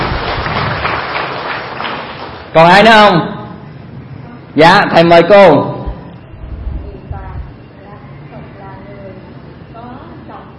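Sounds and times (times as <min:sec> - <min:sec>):
audience applause: 0:00.0 - 0:02.5
speech: 0:02.5 - 0:03.4, 0:04.6 - 0:05.7.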